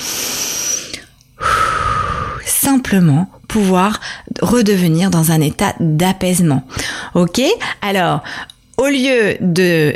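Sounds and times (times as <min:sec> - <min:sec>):
calming breaths: 0:00.0 - 0:02.5, 0:06.7 - 0:08.6
speech: 0:02.7 - 0:09.9.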